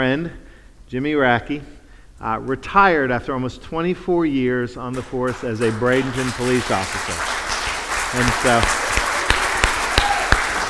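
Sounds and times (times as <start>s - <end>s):
speech: 0.0s - 7.4s, 8.1s - 8.8s
audience applauding: 5.3s - 10.6s.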